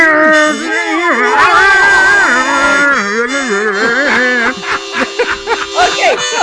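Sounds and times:
voice imitating eerie car hum: 0.0 - 5.1
laughter: 0.4 - 6.4.

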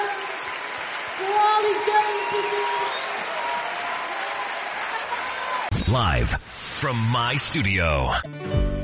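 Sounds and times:
audience applauding: 0.0 - 6.2
speech: 1.6 - 3.1, 5.9 - 8.7.

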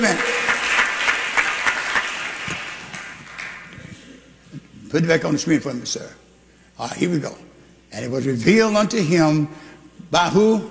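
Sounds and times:
audience clapping: 0.0 - 4.0
speech: 4.9 - 6.2, 6.8 - 10.6.

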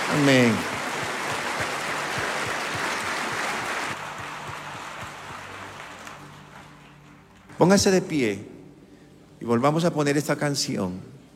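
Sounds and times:
audience applause: 0.0 - 7.6
speech: 0.1 - 0.7, 7.6 - 8.5, 9.4 - 11.2.

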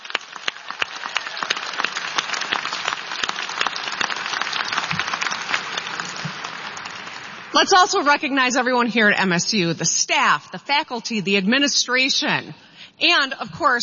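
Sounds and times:
applause: 0.0 - 7.6
speech: 7.6 - 13.8.

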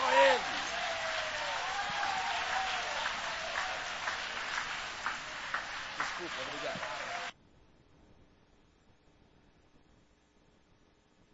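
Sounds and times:
audience applause: 0.0 - 7.4
speech: 6.2 - 7.1.

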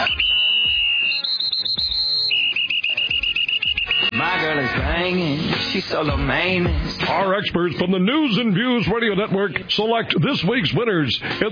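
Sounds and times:
man whistling long high notes: 0.0 - 4.2
music backing with a thumping low beat: 0.0 - 7.6
speech: 5.1 - 11.5.

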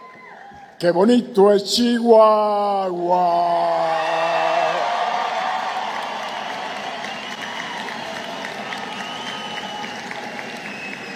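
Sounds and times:
speech: 0.8 - 4.8
crowd applauding and cheering: 3.7 - 11.1.

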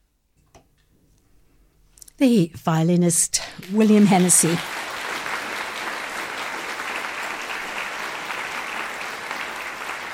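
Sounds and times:
speech: 2.2 - 4.8
audience applause after a violin concerto performance: 3.6 - 10.1.

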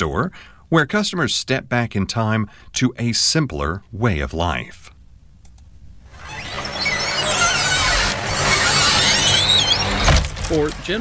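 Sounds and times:
speech: 0.0 - 4.9, 10.5 - 11.0
screen door opening at a small town country store: 6.1 - 11.0.

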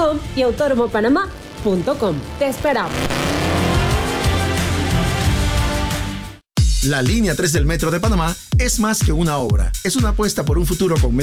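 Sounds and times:
speech: 0.2 - 3.2, 6.8 - 11.2
race car tire noise: 0.7 - 5.5
race car engine roaring on a track: 2.2 - 5.9.

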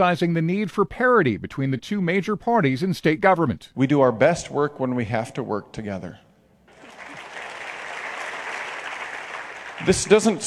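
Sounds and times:
speech: 0.0 - 6.2, 9.8 - 10.4
audience clapping at a fundraiser: 6.7 - 10.4.

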